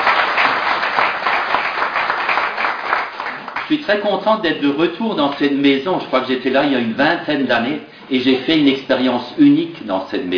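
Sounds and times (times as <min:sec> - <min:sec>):
audience applause: 0:00.0 - 0:03.8
speech: 0:03.7 - 0:10.3.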